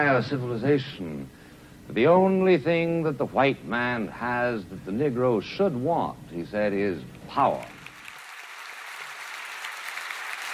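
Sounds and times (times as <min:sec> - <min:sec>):
speech: 0:00.0 - 0:07.8
applause in a grand hall at a New York City Public Library event: 0:07.4 - 0:10.5.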